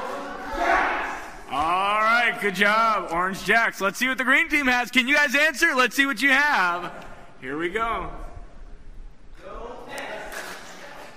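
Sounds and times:
team shouting a cheer: 0.1s - 2.8s
speech: 2.4s - 8.2s.

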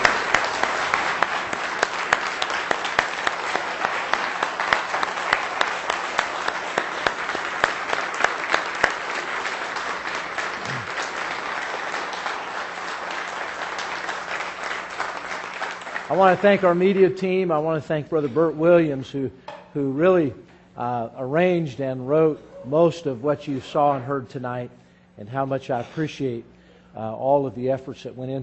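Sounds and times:
audience applause for a choir: 0.0s - 16.8s
speech: 16.2s - 28.4s.

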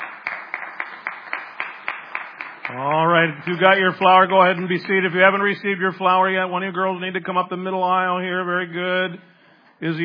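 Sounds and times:
audience clapping at a school gathering: 0.0s - 5.5s
speech: 2.7s - 10.0s.

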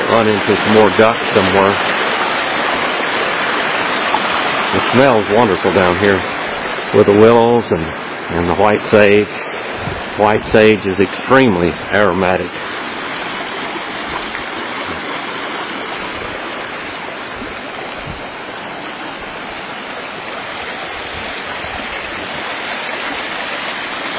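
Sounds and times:
creek water rushing: 0.0s - 24.1s
speech: 0.2s - 2.0s, 4.7s - 9.5s, 10.2s - 12.8s.

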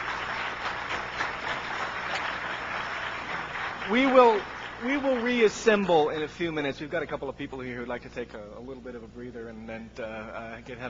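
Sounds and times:
audience applause: 0.0s - 6.3s
speech: 3.9s - 10.8s.

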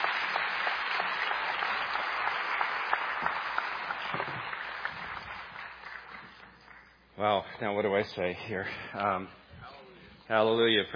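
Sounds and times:
audience clapping for a guest speaker: 0.0s - 7.0s
speech: 7.2s - 9.4s, 10.3s - 10.9s.

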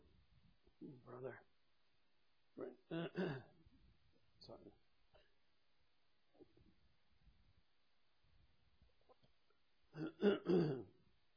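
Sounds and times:
speech: 0.8s - 1.5s, 2.6s - 3.5s, 4.4s - 4.8s, 9.9s - 10.9s
person clearing throat during a spoken Bible reading: 2.9s - 3.5s, 10.0s - 11.0s.

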